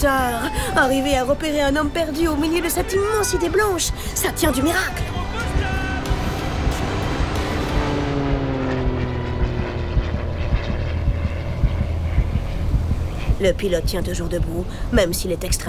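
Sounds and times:
speech: 0:00.0 - 0:05.2, 0:13.4 - 0:15.6
propeller plane droning overhead: 0:03.4 - 0:15.0.

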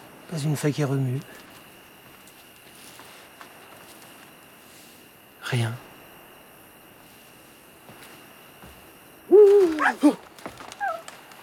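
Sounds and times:
speech: 0:00.3 - 0:01.5, 0:05.5 - 0:05.9
owl hooting at night: 0:09.3 - 0:10.2, 0:10.8 - 0:11.1.

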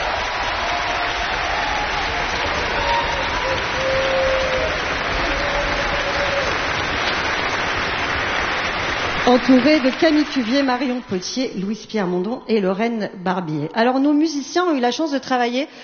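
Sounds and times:
audience applause: 0:00.0 - 0:11.3
speech: 0:09.3 - 0:15.8.

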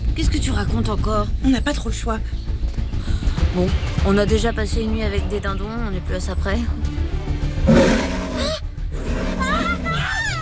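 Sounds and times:
speech: 0:00.2 - 0:02.5, 0:03.6 - 0:07.0
jaguar roaring: 0:07.6 - 0:10.4.

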